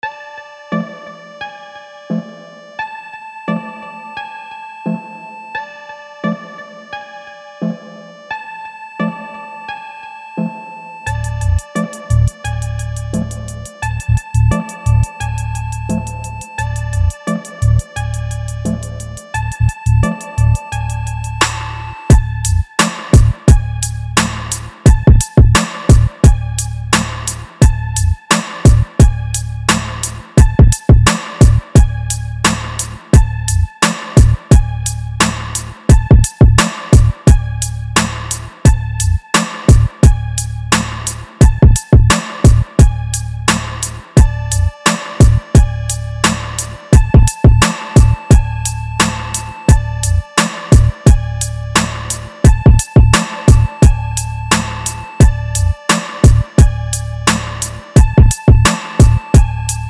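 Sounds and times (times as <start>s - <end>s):
EDM trap music: 11.1s - 59.8s.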